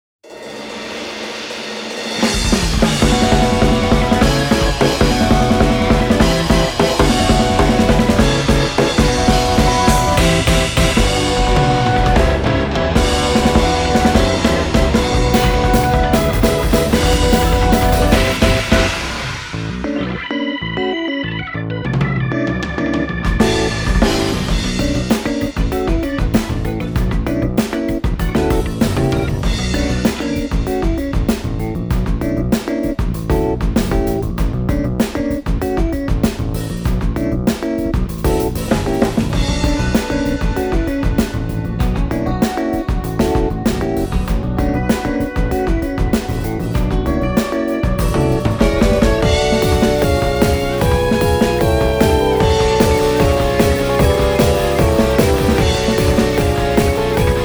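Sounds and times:
off vocal instrumental music: 0.4 - 21.3, 22.6 - 57.4.

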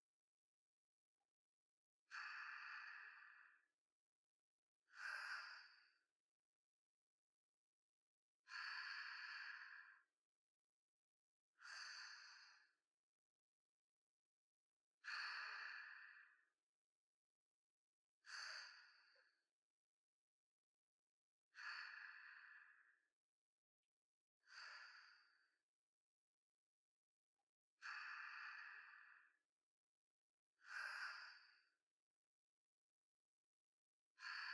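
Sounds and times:
sleep breathing ASMR: 2.1 - 3.7, 4.9 - 6.0, 8.5 - 10.1, 11.6 - 12.8, 15.0 - 16.4, 21.6 - 23.0, 24.5 - 25.6, 27.8 - 29.4, 30.6 - 31.8, 34.2 - 34.5.

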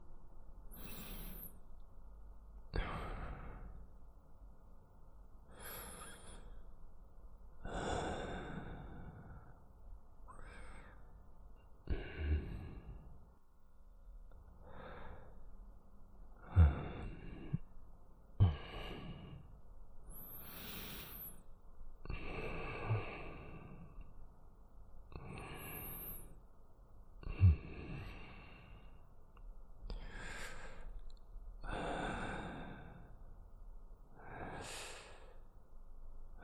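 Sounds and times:
person breathing in sleep: 0.7 - 1.6, 2.8 - 3.9, 5.5 - 6.7, 7.6 - 9.6, 10.2 - 13.3, 14.6 - 15.5, 16.4 - 17.8, 18.4 - 24.1, 25.1 - 26.4, 27.2 - 29.1, 29.9 - 31.0, 31.6 - 33.2, 34.1 - 35.6.

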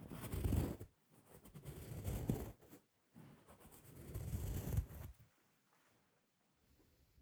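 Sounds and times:
ear cleaning scratching: 0.0 - 5.2.

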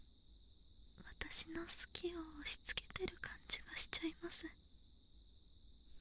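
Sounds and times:
left cotton swab ASMR: 1.0 - 4.5.

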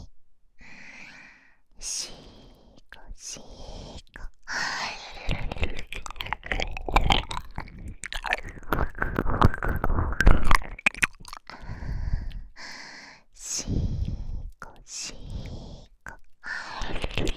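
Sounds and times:
ear licking in left ear: 4.0 - 13.0, 13.8 - 17.3.

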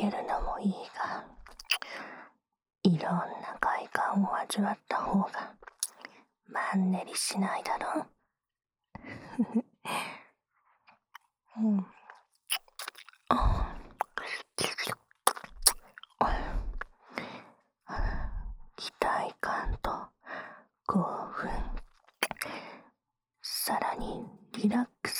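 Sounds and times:
adult woman's teasing voice: 0.0 - 1.4, 2.9 - 5.4, 6.5 - 8.1, 11.6 - 11.9, 13.3 - 13.9, 16.2 - 16.7, 18.0 - 20.1, 20.9 - 21.8, 23.5 - 25.1
ear licking on the right ear: 1.5 - 2.0, 5.7 - 6.0, 12.5 - 16.1, 22.2 - 22.5.

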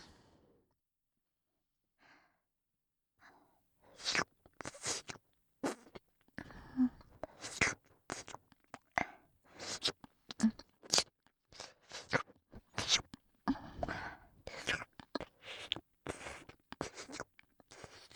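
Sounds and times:
ear licking: 4.0 - 6.0, 7.2 - 11.1, 11.8 - 18.1.

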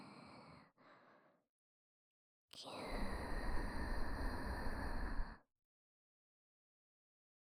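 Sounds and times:
person breathing in sleep: 2.9 - 5.5.

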